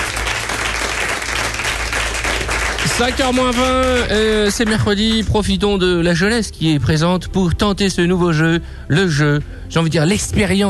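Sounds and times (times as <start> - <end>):
audience applause: 0.0 - 4.6
speech: 2.9 - 10.6.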